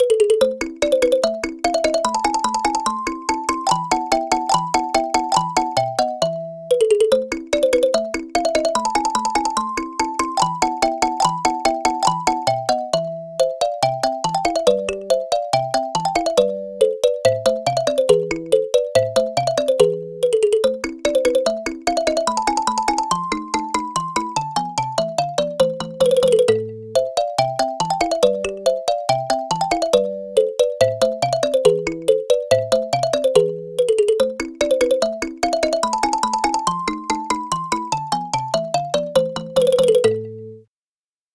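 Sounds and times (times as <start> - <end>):
kalimba: 0.0 - 40.6.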